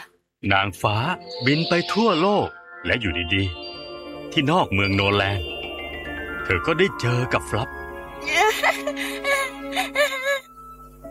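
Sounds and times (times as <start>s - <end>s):
speech: 0.4s - 3.7s, 4.3s - 5.5s, 6.5s - 10.4s
person performing a fairy tale character crying: 8.3s - 10.5s.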